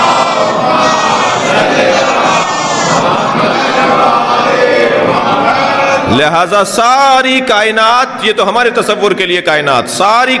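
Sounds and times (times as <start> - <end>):
audience reciting salawat in unison: 0.0 - 6.2
speech: 6.1 - 10.3.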